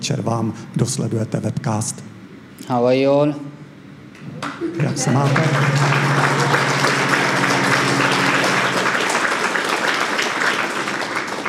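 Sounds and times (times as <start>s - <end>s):
speech: 0.0s - 3.6s, 4.6s - 6.4s
audience clapping: 4.4s - 11.4s.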